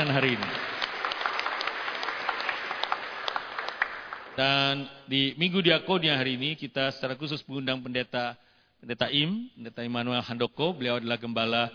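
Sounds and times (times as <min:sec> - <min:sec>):
church congregation applauding during a Sunday service: 0:00.0 - 0:04.8
speech: 0:00.1 - 0:00.7, 0:04.4 - 0:11.7.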